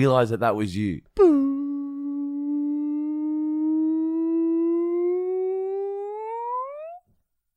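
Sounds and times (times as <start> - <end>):
speech: 0.0 - 1.4
dog howling: 2.2 - 7.0.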